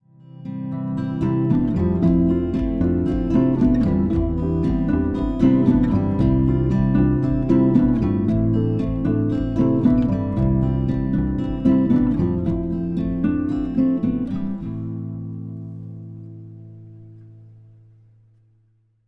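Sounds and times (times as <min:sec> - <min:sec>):
music: 0:00.0 - 0:18.6.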